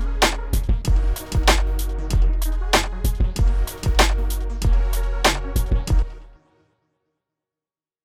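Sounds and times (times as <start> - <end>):
dirty south hip hop music: 0.0 - 6.4.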